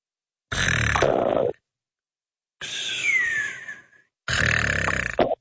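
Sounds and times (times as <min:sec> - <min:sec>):
man snoring in loud rasping breaths: 0:00.5 - 0:01.4, 0:04.3 - 0:05.2.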